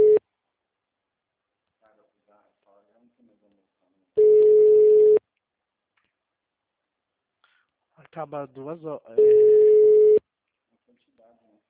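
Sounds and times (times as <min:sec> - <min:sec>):
telephone busy signal on an unanswered call: 0:00.0 - 0:00.2, 0:04.2 - 0:05.2, 0:09.2 - 0:10.2
speech: 0:08.2 - 0:09.7.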